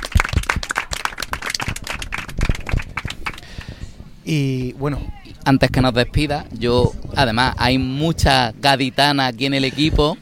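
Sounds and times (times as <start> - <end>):
team applauding themselves: 0.0 - 3.8
speech: 4.3 - 10.1.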